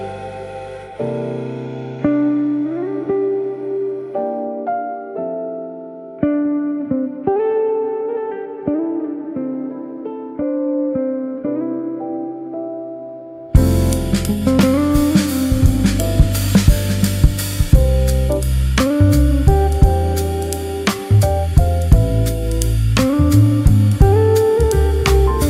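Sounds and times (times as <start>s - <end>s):
chill jazz music: 0.0s - 25.4s.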